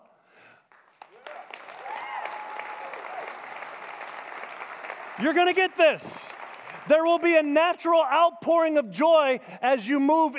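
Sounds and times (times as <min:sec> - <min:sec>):
audience applause: 0:00.7 - 0:07.5
voices calling out and cheering: 0:01.1 - 0:06.4
speech: 0:05.2 - 0:06.2, 0:06.8 - 0:10.3.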